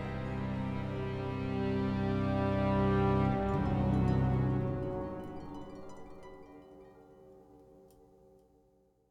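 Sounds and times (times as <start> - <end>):
mystery music stinger: 0.1 - 6.3.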